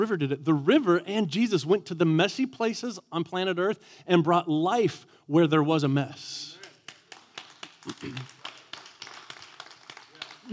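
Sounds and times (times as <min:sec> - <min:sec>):
speech: 0:00.0 - 0:06.6, 0:07.9 - 0:08.4
scattered clapping from a few audience members: 0:06.5 - 0:10.5.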